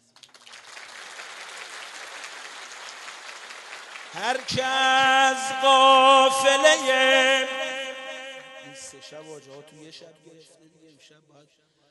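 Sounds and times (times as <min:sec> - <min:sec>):
audience clapping at a Persian poetry recitation gathering: 0:00.0 - 0:06.4
speech: 0:04.1 - 0:07.6, 0:08.9 - 0:11.8.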